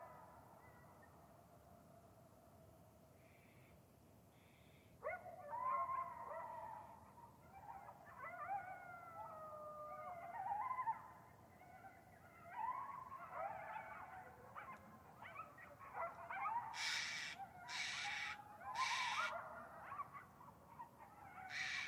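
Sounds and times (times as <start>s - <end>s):
several coyotes yipping and howling: 0.0s - 1.3s, 5.0s - 21.8s
harsh raspy bird calls: 16.7s - 19.3s, 21.5s - 21.8s.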